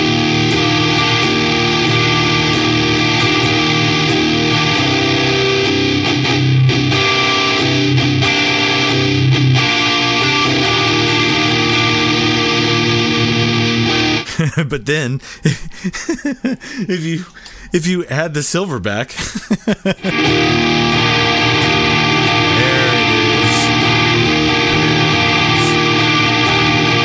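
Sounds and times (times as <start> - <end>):
electric guitar through two stacked fuzz pedals playing chords: 0.0 - 14.3, 20.0 - 27.0
laughter: 14.2 - 17.3, 19.1 - 20.4
speech: 14.8 - 21.2.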